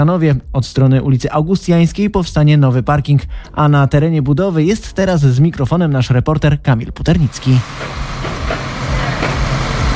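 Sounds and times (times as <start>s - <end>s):
speech: 0.0s - 8.6s
heavy construction machinery working: 7.3s - 9.9s.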